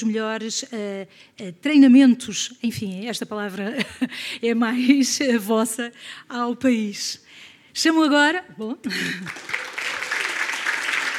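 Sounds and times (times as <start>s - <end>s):
speech: 0.0s - 9.7s
audience applause at an event introducing speakers: 9.1s - 11.1s.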